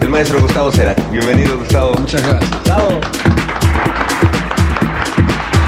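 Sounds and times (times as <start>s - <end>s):
speech: 0.2s - 3.3s
audience applause: 2.0s - 5.6s.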